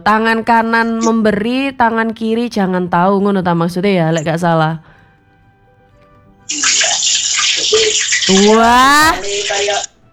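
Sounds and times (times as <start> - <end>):
speech: 0.0 - 4.9, 6.5 - 6.7, 7.7 - 9.9
fish frying in a pan: 6.5 - 9.9.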